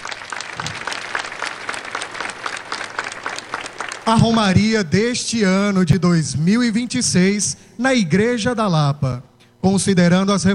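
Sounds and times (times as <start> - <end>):
warm round of applause: 0.0 - 4.7
speech: 4.1 - 10.5.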